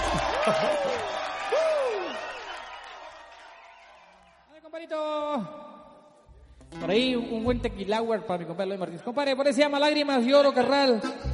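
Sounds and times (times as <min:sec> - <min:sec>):
audience applause: 0:00.0 - 0:04.4
speech: 0:04.9 - 0:05.6, 0:06.7 - 0:11.3.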